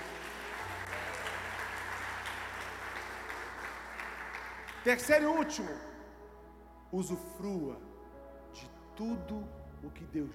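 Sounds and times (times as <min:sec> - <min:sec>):
audience applauding: 0:00.0 - 0:05.3
speech: 0:04.8 - 0:05.9, 0:06.9 - 0:07.9, 0:08.5 - 0:10.3.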